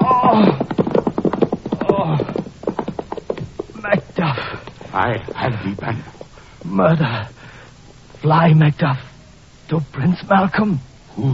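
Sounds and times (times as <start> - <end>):
horse whinnying: 0.0 - 2.5
horse hooves clip-clopping: 0.0 - 6.7
speech: 5.0 - 7.4, 8.2 - 9.1, 9.7 - 11.3.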